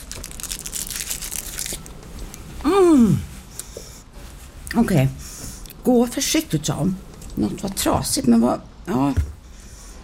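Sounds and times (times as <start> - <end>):
biting into chocolate: 0.0 - 2.3
chocolate wrapper crinkling: 0.0 - 2.5
speech: 3.0 - 3.3, 4.8 - 5.2, 5.8 - 9.3.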